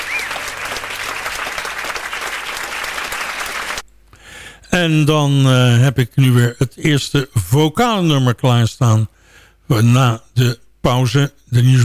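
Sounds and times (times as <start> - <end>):
audience applause for a jazz trio: 0.0 - 3.8
speech: 4.8 - 9.1, 9.7 - 11.8.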